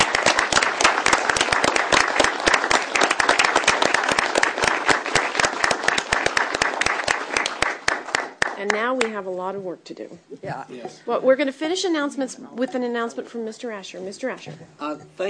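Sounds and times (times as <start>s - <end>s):
audience applause for retiring council member: 0.0s - 8.7s
speech: 9.5s - 15.2s.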